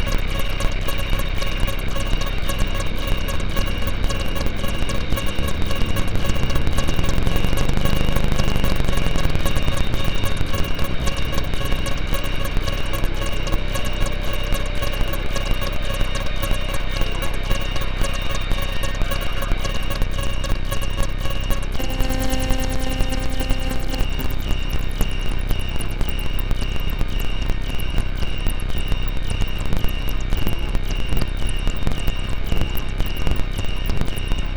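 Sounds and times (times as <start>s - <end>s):
insects chirping: 0.0s - 24.8s
menacing synth drone: 0.0s - 34.5s.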